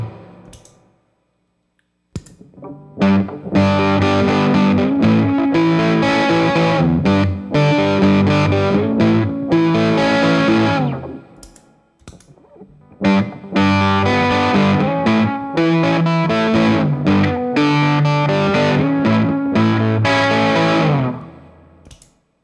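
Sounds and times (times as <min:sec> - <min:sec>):
bass guitar through fuzz pedal at half volume: 0:02.6 - 0:11.2, 0:12.9 - 0:21.2.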